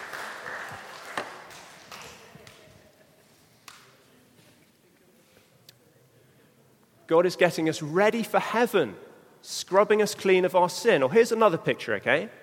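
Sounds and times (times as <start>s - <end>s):
light applause from an audience: 0.0s - 2.8s
speech: 7.1s - 12.4s.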